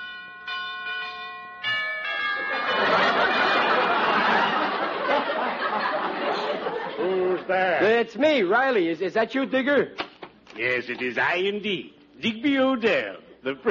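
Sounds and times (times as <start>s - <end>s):
doorbell chiming: 0.0s - 4.7s
audience laughter: 2.4s - 7.5s
speech: 7.5s - 10.0s, 10.6s - 13.6s.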